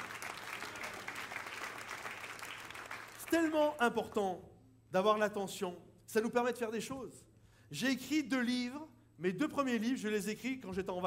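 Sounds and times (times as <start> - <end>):
large audience applauding loudly: 0.0 - 3.8
speech: 3.3 - 11.0.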